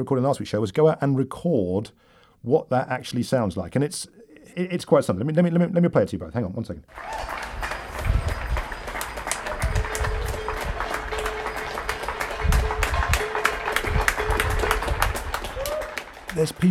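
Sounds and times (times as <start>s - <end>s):
speech: 0.0s - 7.5s, 16.4s - 16.6s
street crowd clapping: 6.9s - 16.6s.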